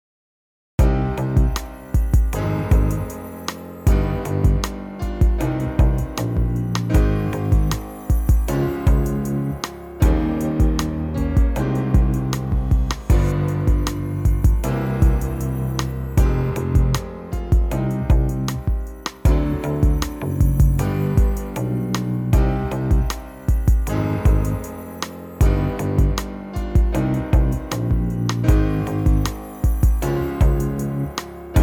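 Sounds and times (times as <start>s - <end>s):
electronic tutti prelude in C minor: 0.8s - 31.6s.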